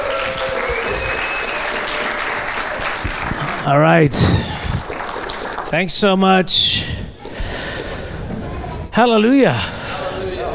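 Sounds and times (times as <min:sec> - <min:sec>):
congregation applauding to welcome a pastor at a church service: 0:00.0 - 0:06.1
speech: 0:03.6 - 0:04.6, 0:05.7 - 0:06.9, 0:09.0 - 0:09.8.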